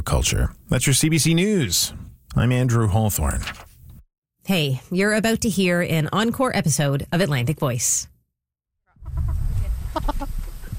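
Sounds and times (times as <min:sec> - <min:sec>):
speech: 0:00.1 - 0:03.7, 0:04.5 - 0:08.1
backyard chickens clucking: 0:08.9 - 0:10.7.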